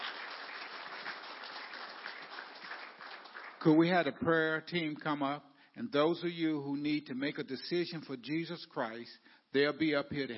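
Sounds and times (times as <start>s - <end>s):
audience clapping: 0.0s - 4.1s
speech: 3.6s - 10.3s.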